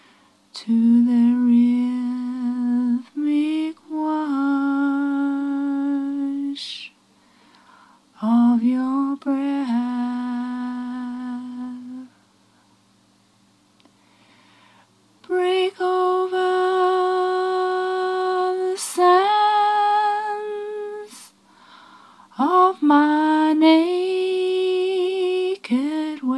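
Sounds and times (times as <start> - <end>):
woman singing: 0.5 - 7.0, 8.2 - 12.2, 15.2 - 21.4, 22.3 - 26.3.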